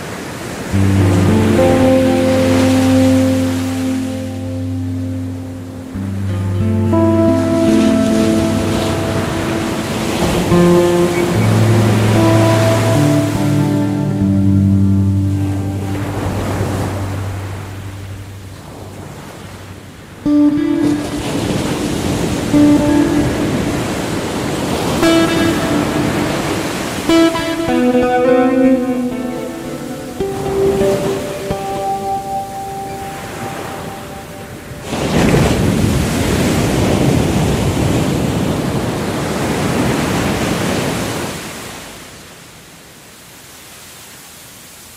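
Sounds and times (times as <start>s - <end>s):
Pacific waves washing in: 0.0s - 44.9s
low sustained tones: 0.8s - 35.0s.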